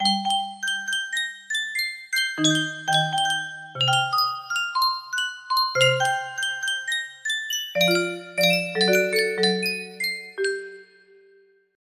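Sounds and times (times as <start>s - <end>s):
music box melody: 0.0s - 11.6s.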